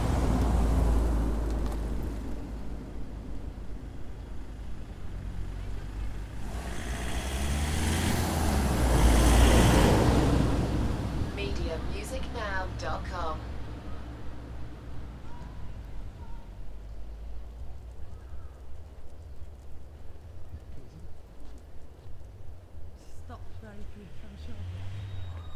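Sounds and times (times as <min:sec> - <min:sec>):
people walking in a forest car park in Wales: 0:00.0 - 0:06.8, 0:10.7 - 0:25.5
cars driving by in a forest car park in Wales: 0:00.0 - 0:17.2, 0:23.2 - 0:25.5
people talking in a forest car park in Wales: 0:11.2 - 0:13.5, 0:23.0 - 0:24.8.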